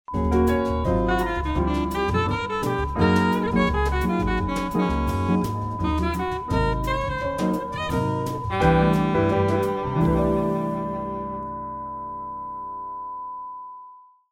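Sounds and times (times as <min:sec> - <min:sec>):
groovy jingles: 0:00.2 - 0:10.5.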